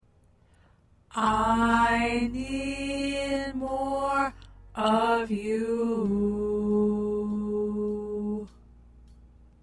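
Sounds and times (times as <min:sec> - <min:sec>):
tenor singing: 0:01.1 - 0:08.6.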